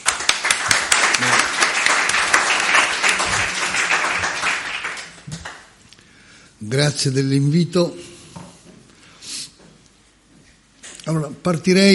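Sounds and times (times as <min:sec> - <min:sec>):
audience applause: 0:00.0 - 0:05.7
speech: 0:06.6 - 0:08.1, 0:11.4 - 0:11.9.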